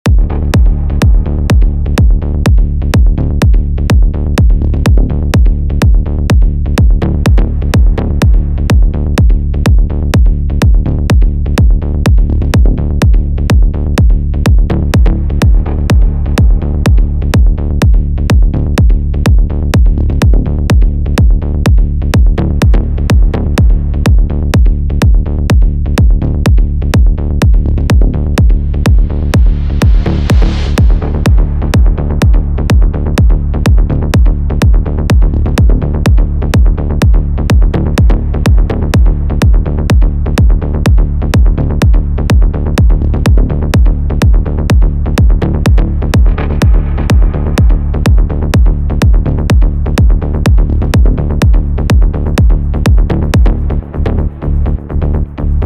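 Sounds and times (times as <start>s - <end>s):
melodic techno music: 0.1s - 55.6s.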